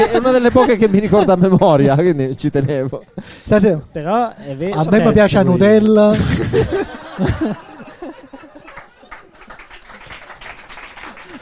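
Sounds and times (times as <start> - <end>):
audience laughter: 0.0 - 1.6, 6.2 - 10.0
speech: 0.0 - 7.7
audience applause: 7.3 - 11.4.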